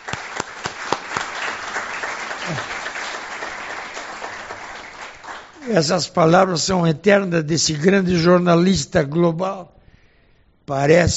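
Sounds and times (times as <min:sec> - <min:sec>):
round of applause: 0:00.0 - 0:05.8
speech: 0:02.5 - 0:02.8, 0:05.7 - 0:09.8, 0:10.7 - 0:11.1.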